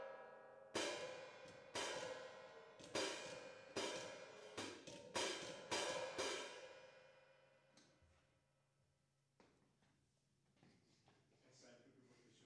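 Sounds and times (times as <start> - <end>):
drum kit playing: 0.8 - 6.7.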